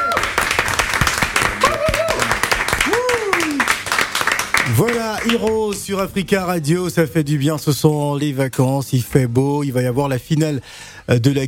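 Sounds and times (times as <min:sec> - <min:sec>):
applause in the studio: 0:00.0 - 0:05.9
speech: 0:04.8 - 0:11.4.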